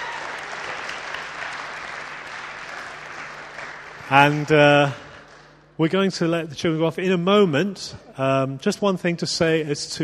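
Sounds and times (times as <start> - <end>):
audience applause for children: 0.0 - 5.5
speech: 4.1 - 5.0, 5.8 - 10.0.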